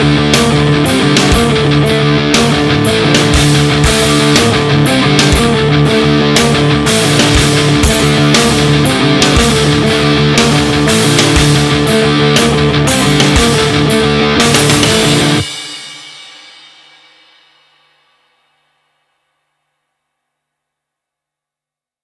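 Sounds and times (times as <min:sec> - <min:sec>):
guitar through rigs: 0:00.0 - 0:17.0.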